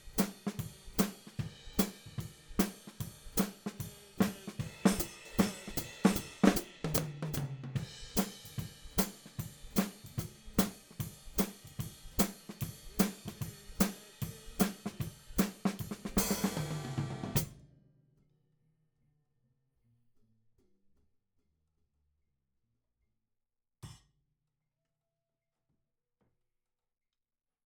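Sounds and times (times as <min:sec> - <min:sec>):
hi-hat: 0:00.0 - 0:16.8.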